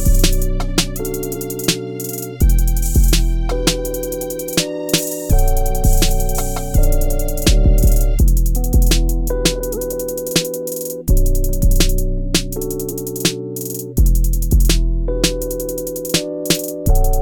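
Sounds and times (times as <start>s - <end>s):
gangster hip hop beat: 0.0s - 17.2s.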